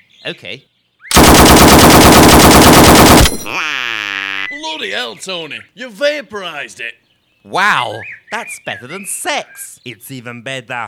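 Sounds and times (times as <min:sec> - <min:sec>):
speech: 0:00.2 - 0:00.7, 0:03.3 - 0:10.8
M60 machine gun firing: 0:01.1 - 0:03.6.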